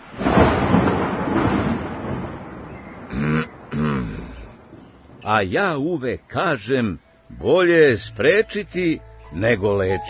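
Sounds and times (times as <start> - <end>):
thunder clap sound effect: 0.0 - 5.5
speech: 5.3 - 10.0.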